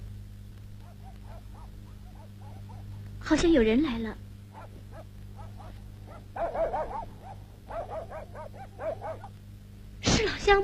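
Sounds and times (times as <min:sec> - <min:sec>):
steady low hum: 0:00.0 - 0:10.6
dog barking: 0:00.8 - 0:03.0, 0:04.5 - 0:09.3
speech: 0:03.3 - 0:04.2, 0:10.2 - 0:10.6.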